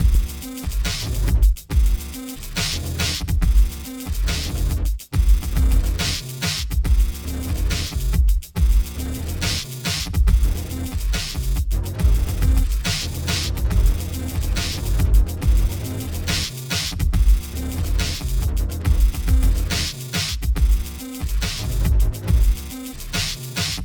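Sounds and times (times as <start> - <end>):
dubstep music: 0.0 - 23.8.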